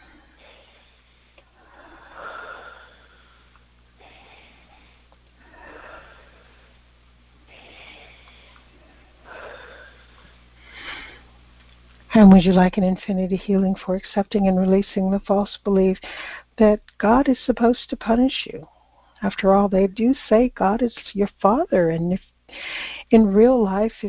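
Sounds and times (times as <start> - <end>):
deep breaths during a guided healing session: 0.0 - 6.9, 7.5 - 11.4, 16.0 - 16.6, 22.5 - 23.1
speech: 12.2 - 24.0.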